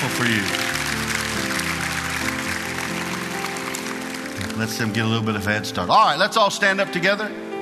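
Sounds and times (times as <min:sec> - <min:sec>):
audience clapping hands: 0:00.0 - 0:05.5
speech: 0:00.1 - 0:00.6, 0:04.6 - 0:07.5.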